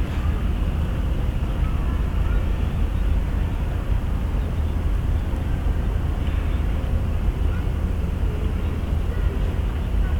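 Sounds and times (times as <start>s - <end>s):
low engine rumble at Yokohama Port: 0.0s - 10.1s.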